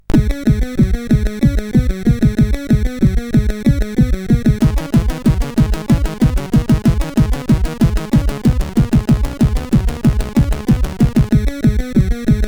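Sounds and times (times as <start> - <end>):
SID chiptune music on a CSG8580R5 chip: 0.0 - 12.4.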